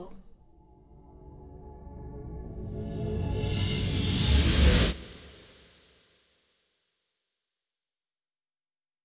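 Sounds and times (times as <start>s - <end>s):
cymbal whoosh stinger: 0.5s - 6.0s.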